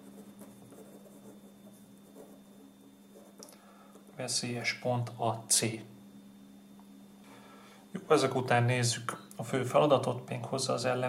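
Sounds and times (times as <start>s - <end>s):
hand writing on a board to label a lecture diagram: 0.0s - 2.5s
speech: 4.2s - 6.0s, 8.0s - 11.0s.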